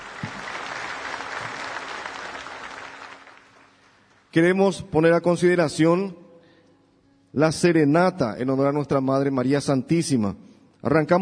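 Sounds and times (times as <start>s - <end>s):
audience applauding: 0.0s - 4.3s
speech: 4.4s - 6.2s, 7.4s - 11.1s.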